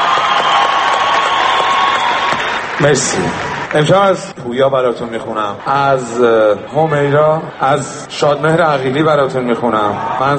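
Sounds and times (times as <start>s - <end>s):
concert audience applause and crowd noise after a song: 0.0s - 4.3s
speech: 2.8s - 10.3s.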